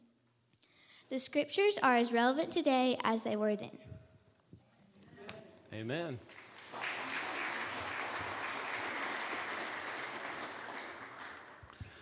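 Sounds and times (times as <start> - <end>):
speech: 1.1 - 3.9, 5.7 - 6.4
audience applauding after scripture reading: 6.2 - 11.9.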